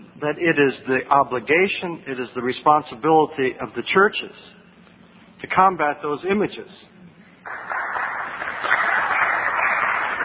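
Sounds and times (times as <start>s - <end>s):
speech: 0.2s - 4.6s, 5.4s - 6.9s
audience applause: 7.5s - 10.2s.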